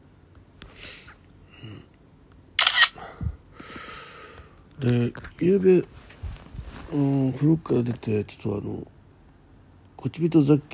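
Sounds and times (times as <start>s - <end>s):
camera picked up and handled: 2.6s - 3.0s
breathing: 3.0s - 4.6s
speech: 4.8s - 6.0s, 6.9s - 8.9s, 10.0s - 10.7s.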